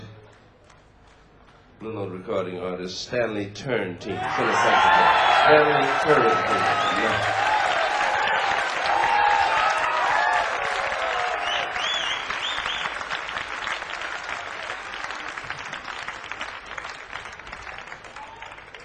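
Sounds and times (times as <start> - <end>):
speech: 1.8 - 7.4
cheers and whistles: 4.2 - 13.2
audience applause: 4.2 - 18.8.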